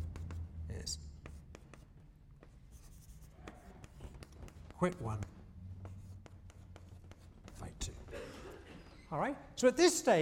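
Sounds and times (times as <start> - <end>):
faint writing strokes: 0.0 - 8.1
low steady hum: 0.0 - 10.2
speech: 4.8 - 5.3, 9.1 - 10.2.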